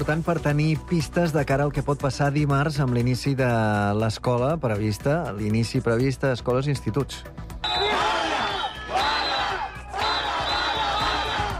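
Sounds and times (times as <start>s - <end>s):
speech: 0.0s - 7.4s
protest crowd shouting and chanting: 7.6s - 11.5s.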